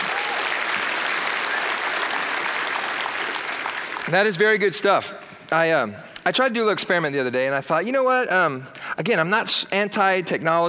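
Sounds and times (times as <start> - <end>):
audience applause: 0.0 - 4.8
speech: 4.1 - 10.6.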